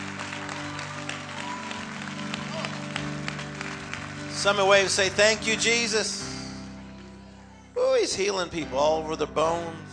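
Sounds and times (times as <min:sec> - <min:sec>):
audience clapping: 0:00.0 - 0:06.0
speech: 0:04.4 - 0:06.3, 0:08.1 - 0:09.9.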